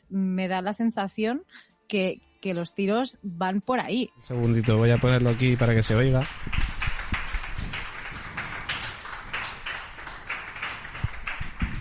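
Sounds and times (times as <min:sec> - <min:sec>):
speech: 0:00.1 - 0:06.8
applause: 0:04.3 - 0:11.7.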